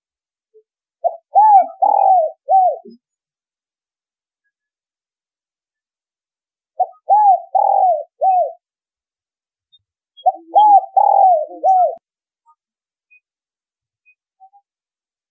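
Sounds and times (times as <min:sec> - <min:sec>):
spotted dove cooing: 0:01.0 - 0:03.0, 0:06.8 - 0:08.6, 0:10.2 - 0:12.0.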